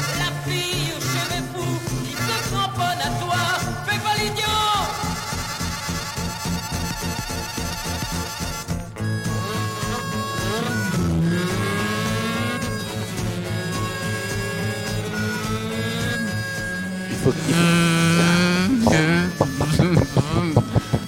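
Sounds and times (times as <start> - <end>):
motorcycle engines revving while racing: 0.0 - 21.0
motorcycle throttle blips: 5.2 - 21.0.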